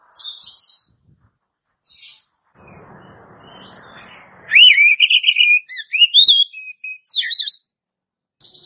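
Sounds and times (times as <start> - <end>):
Oriental magpie-robin whistled phrase: 4.5 - 7.6.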